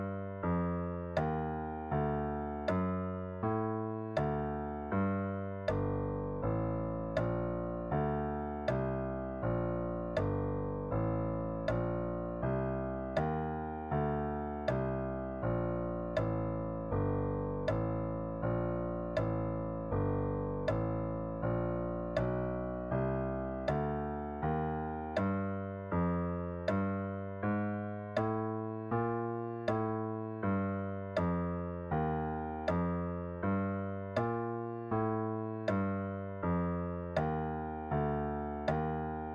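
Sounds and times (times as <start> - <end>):
walking bass line on bass: 0.0 - 39.3.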